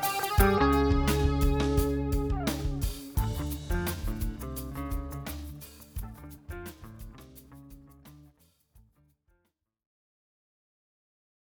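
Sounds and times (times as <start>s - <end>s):
funk music: 0.0s - 8.3s.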